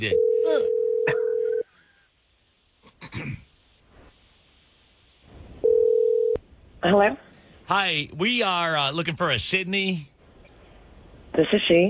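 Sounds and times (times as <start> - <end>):
speech: 0.0 - 0.7, 6.8 - 10.1, 11.4 - 11.8
telephone ringing: 0.0 - 1.6, 5.6 - 6.4.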